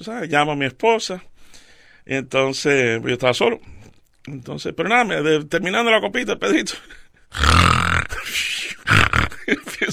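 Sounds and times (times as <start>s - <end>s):
speech: 0.0s - 1.3s, 2.0s - 7.8s, 8.4s - 9.9s
person imitating snoring: 7.3s - 9.5s.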